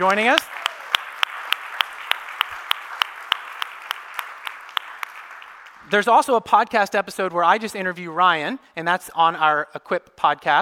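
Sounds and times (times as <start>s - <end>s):
speech: 0.0s - 0.6s, 5.9s - 10.6s
audience applause: 0.0s - 5.9s.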